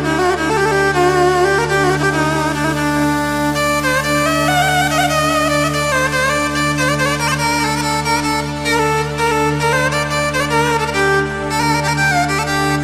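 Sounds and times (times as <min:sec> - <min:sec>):
Yamaha PSR 9000 keyboard violin taksim improvisation: 0:00.0 - 0:12.8.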